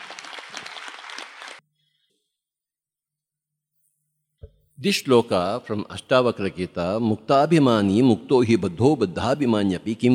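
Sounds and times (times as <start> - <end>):
audience applause: 0.0 - 1.6
speech: 4.8 - 10.1.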